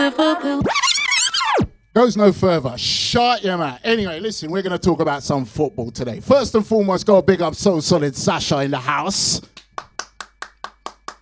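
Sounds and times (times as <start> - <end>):
speech: 0.0 - 0.9, 2.0 - 9.6
crisp hand claps: 9.6 - 11.2.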